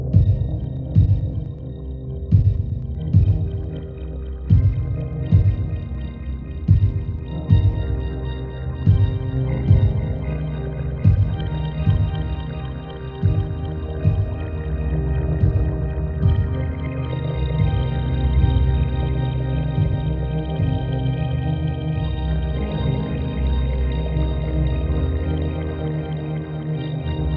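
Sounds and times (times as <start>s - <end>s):
lullaby music: 0.1s - 27.3s.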